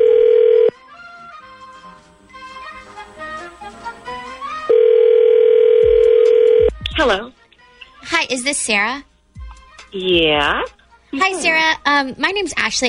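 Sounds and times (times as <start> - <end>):
telephone dial tone while a call is being placed: 0.0 - 0.7, 4.7 - 6.7
speech: 7.0 - 7.2, 8.3 - 9.1, 9.9 - 12.8.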